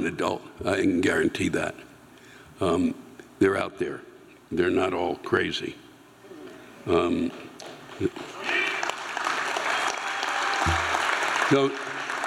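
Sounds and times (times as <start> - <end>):
speech: 0.0 - 1.9, 2.6 - 5.8, 6.8 - 8.4, 11.5 - 11.8
audience applauding: 8.3 - 12.2.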